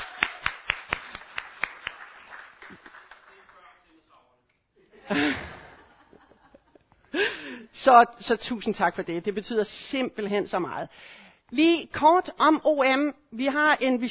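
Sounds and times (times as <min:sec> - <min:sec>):
audience at a Christian mission gathering clapping for a board member: 0:00.0 - 0:04.2
laughter: 0:04.8 - 0:07.2
speech: 0:07.8 - 0:14.0.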